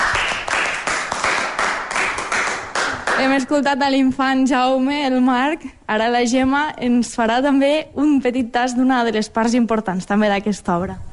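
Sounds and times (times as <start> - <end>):
audience applause: 0.0 - 3.2
speech: 3.2 - 11.1.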